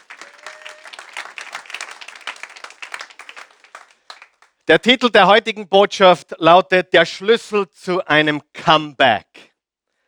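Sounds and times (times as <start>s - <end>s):
audience applause: 0.0s - 4.6s
speech: 4.7s - 9.5s.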